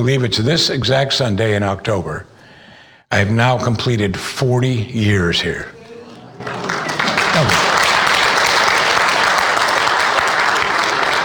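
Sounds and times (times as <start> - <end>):
speech: 0.0 - 2.3, 3.1 - 5.8, 7.4 - 7.6
crowd applause: 6.1 - 11.2.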